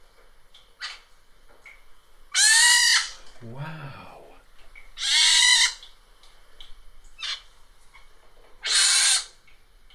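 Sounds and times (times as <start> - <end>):
baby pine martens squealing in attic: 2.3 - 3.2, 5.0 - 5.8, 7.2 - 7.5, 8.6 - 9.4
speech: 3.4 - 4.1
person exclaiming: 3.4 - 4.4.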